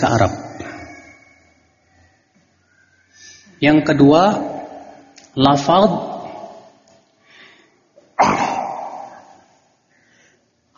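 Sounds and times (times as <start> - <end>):
speech: 0.0 - 0.4, 3.6 - 4.5, 5.4 - 6.1
sneeze: 8.2 - 9.5.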